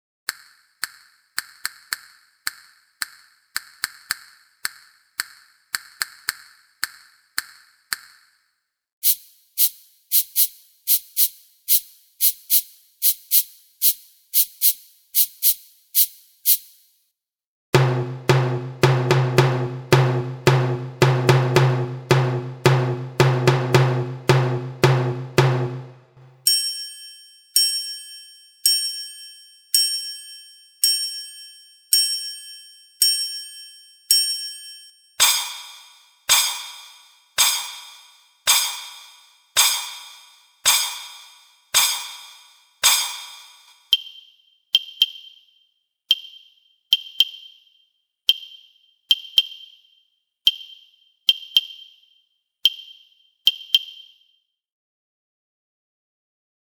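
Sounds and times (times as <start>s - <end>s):
wooden clapper: 0.3s - 16.7s, 35.2s - 45.4s, 46.1s - 47.6s, 48.3s - 49.8s, 50.5s - 52.0s, 52.7s - 54.1s
small drum: 17.8s - 26.1s, 35.2s - 44.1s
triangle: 26.4s - 54.2s
cymbals: 35.2s - 43.8s.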